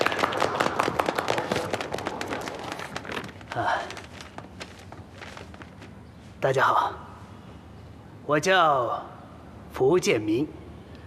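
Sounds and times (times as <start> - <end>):
crowd applauding: 0.0 - 4.3
speech: 3.6 - 4.0, 6.4 - 7.0, 8.3 - 9.1, 9.8 - 10.6.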